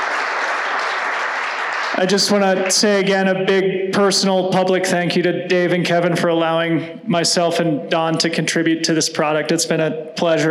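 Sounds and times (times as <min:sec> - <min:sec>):
round of applause: 0:00.0 - 0:03.1
speech: 0:01.9 - 0:10.4.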